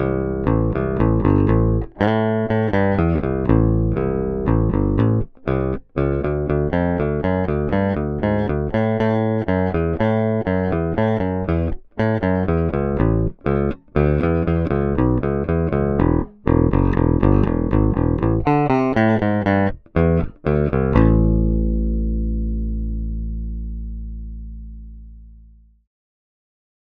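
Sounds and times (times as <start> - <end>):
rock bass guitar picked: 0.0 - 25.8.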